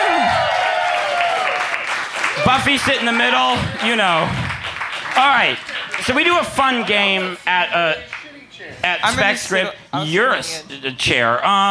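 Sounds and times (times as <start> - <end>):
audience applause: 0.0 - 8.3
speech: 2.5 - 4.4, 5.2 - 11.6.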